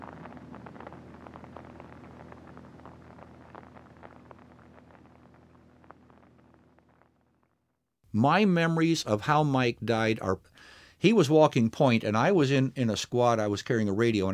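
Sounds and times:
rain falling at night: 0:00.0 - 0:07.2
speech: 0:08.2 - 0:14.3.

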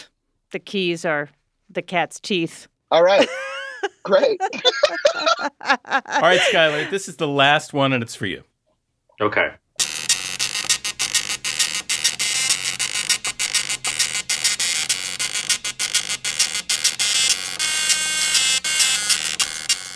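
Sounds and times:
speech: 0:00.5 - 0:08.5, 0:09.2 - 0:09.9
laughter: 0:03.1 - 0:07.0
harsh buzzy electronic pop melody from an old beeping gadget: 0:06.2 - 0:07.0, 0:09.8 - 0:19.9.

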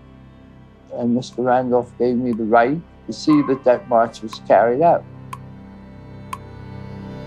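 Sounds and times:
speech: 0:00.9 - 0:05.1
clock ticking: 0:03.3 - 0:04.5.

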